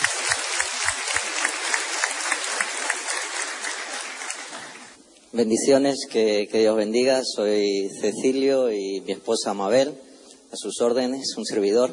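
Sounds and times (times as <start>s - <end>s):
audience applause: 0.0s - 5.0s
speech: 5.3s - 11.9s.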